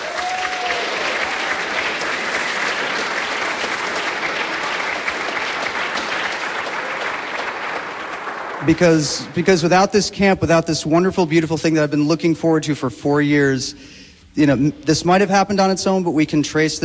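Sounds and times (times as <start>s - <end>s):
crowd clapping: 0.0s - 10.1s
speech: 8.7s - 16.8s.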